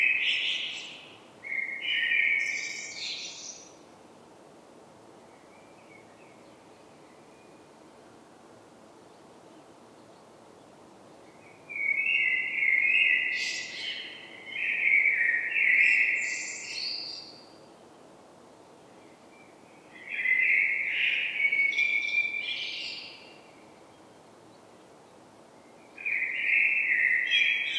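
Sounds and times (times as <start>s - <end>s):
common blackbird Turdus merula song with fluted whistled phrases: 0.0s - 3.8s, 9.0s - 17.7s, 18.8s - 24.9s, 25.6s - 27.7s.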